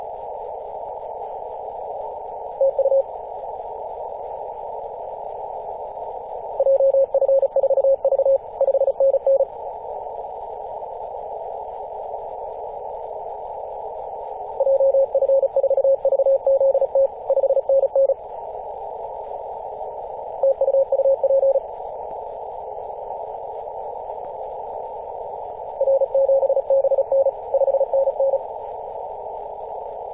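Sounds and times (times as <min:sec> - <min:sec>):
CW morse code signal at 18.071MHz: 0:02.6 - 0:03.0, 0:06.6 - 0:09.5, 0:14.6 - 0:18.2, 0:20.4 - 0:21.6, 0:25.8 - 0:28.4.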